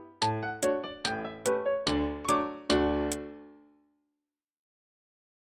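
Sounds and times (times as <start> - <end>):
gavotte at full tempo: 0.2 - 3.5.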